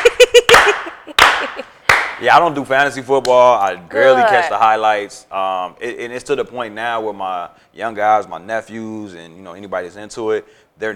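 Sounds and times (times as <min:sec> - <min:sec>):
slow deliberate claps: 0:00.0 - 0:02.4
speech: 0:02.2 - 0:10.9.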